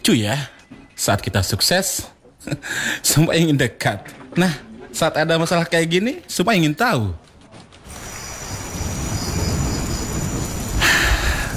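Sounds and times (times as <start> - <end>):
speech: 0.1 - 7.2
rain: 7.2 - 11.5
thunder: 7.6 - 11.5.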